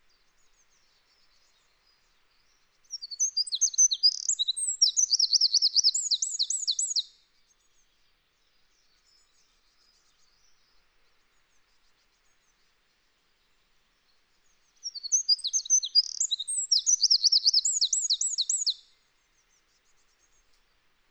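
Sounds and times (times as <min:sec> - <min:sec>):
Eurasian wren Troglodytes troglodytes singing: 0:03.0 - 0:07.1, 0:14.8 - 0:18.8.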